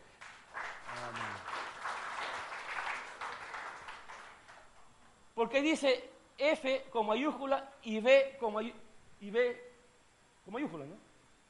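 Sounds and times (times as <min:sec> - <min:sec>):
audience applause: 0:00.1 - 0:04.8
speech: 0:05.4 - 0:09.7, 0:10.4 - 0:11.1.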